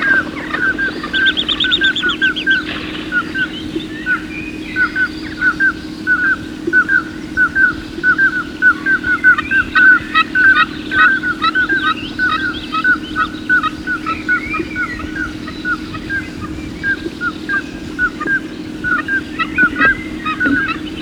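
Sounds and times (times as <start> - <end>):
birds giving quick whistled chirps: 0.0 - 20.9.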